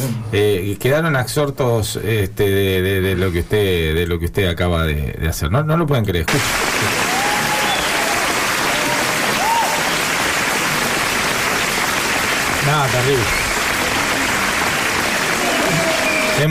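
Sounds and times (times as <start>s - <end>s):
speech: 0.0s - 7.0s, 12.8s - 13.5s
audience applause: 6.3s - 16.4s.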